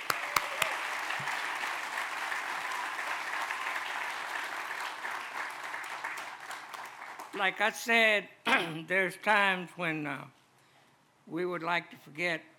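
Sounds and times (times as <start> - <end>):
audience applause: 0.0 - 7.4
speech: 7.4 - 10.4, 11.3 - 12.5.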